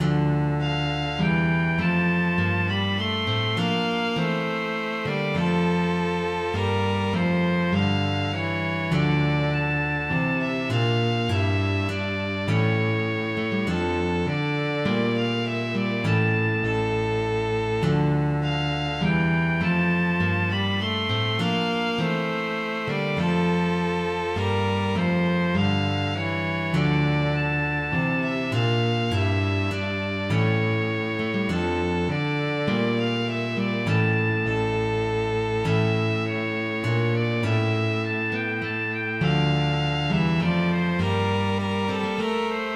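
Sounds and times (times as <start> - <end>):
sarabande music: 0.0 - 42.7.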